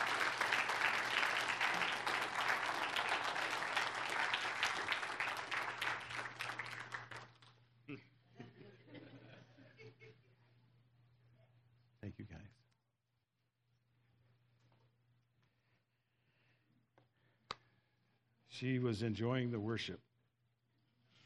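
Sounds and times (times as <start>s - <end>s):
audience applause: 0.0s - 7.5s
speech: 18.6s - 20.1s.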